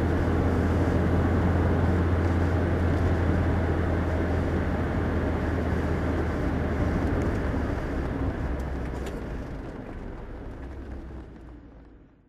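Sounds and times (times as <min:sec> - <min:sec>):
Citroen DS23 driving: 0:00.0 - 0:12.2.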